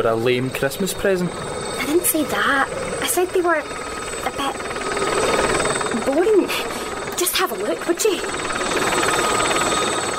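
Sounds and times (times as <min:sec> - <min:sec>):
speech: 0:00.0 - 0:05.3, 0:06.0 - 0:06.8, 0:07.4 - 0:09.5
helicopter descending to land: 0:00.0 - 0:10.1.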